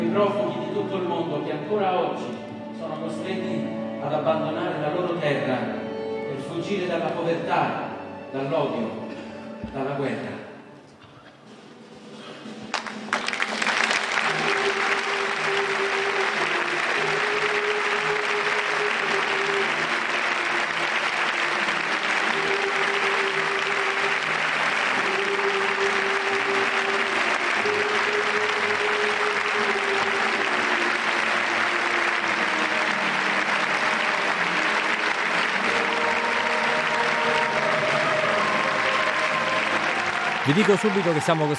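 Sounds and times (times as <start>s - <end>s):
speech: 0.2s - 10.4s, 40.6s - 41.5s
theatre audience applause: 12.7s - 41.5s.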